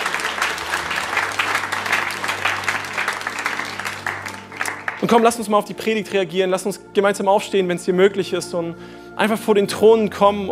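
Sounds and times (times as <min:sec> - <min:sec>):
audience applause: 0:00.0 - 0:05.2
speech: 0:05.0 - 0:10.4.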